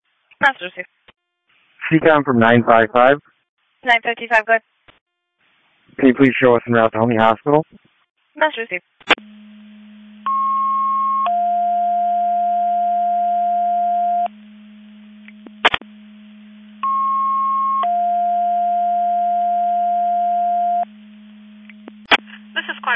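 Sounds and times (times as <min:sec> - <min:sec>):
speech: 0:00.4 - 0:01.0, 0:01.9 - 0:04.7, 0:06.0 - 0:09.4
box alarm receiver alerting tones: 0:10.2 - 0:14.3, 0:16.8 - 0:20.8.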